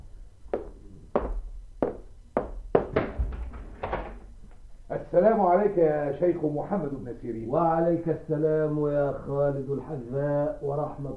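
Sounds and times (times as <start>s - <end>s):
knocking on a wooden door: 0.6s - 3.6s
speech: 5.1s - 11.1s.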